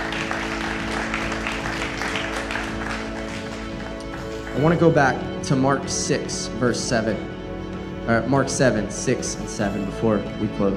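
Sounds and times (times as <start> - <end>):
audience applause: 0.0 - 5.0
speech: 4.6 - 7.3, 8.1 - 10.7.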